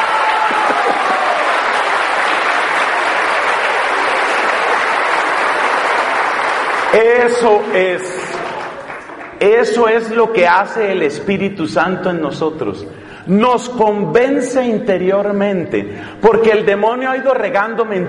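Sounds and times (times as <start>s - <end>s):
audience applause: 0.0s - 9.6s
speech: 6.9s - 8.2s, 9.4s - 18.0s.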